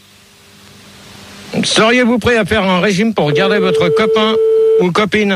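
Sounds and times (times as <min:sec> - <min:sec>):
speech: 0:01.6 - 0:05.3
ringing tone of an outgoing telephone call: 0:03.3 - 0:04.9.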